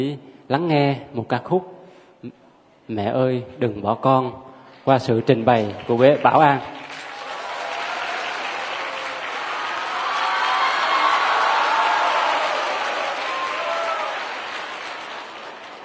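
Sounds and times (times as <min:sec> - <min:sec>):
speech: 0:00.0 - 0:06.8
audience applause: 0:05.2 - 0:15.8.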